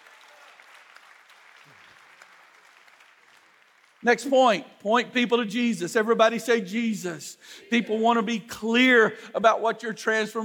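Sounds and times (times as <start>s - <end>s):
audience applauding in praise: 0.0s - 4.0s
speech: 4.0s - 10.4s.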